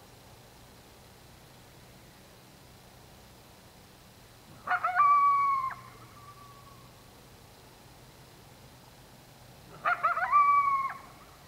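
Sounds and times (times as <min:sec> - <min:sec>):
coyote at night: 0:04.5 - 0:07.0, 0:09.7 - 0:11.4.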